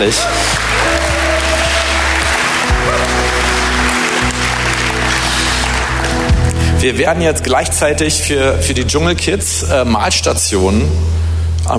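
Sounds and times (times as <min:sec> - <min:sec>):
speech: 0:00.0 - 0:00.8, 0:06.8 - 0:11.7
audience applause: 0:00.0 - 0:06.8.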